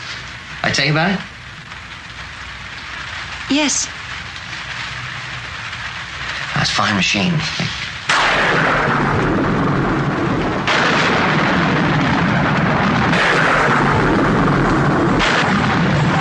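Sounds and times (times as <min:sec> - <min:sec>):
speech: 0:00.6 - 0:01.4, 0:03.5 - 0:04.0, 0:06.6 - 0:07.7
thunder sound effect: 0:08.0 - 0:16.1.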